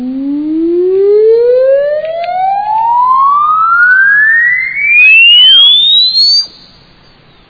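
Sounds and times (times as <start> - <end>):
exponential sine sweep test tone: 0.0 - 6.8.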